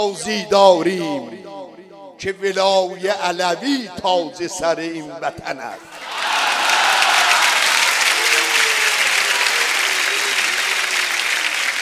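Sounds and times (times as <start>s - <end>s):
speech: 0.0s - 1.5s, 2.2s - 6.4s
audience applause at a gathering: 5.9s - 11.8s.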